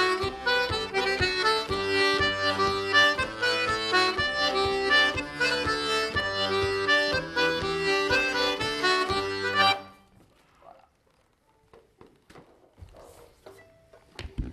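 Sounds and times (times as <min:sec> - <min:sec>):
polka countermelody: 0:00.0 - 0:10.1.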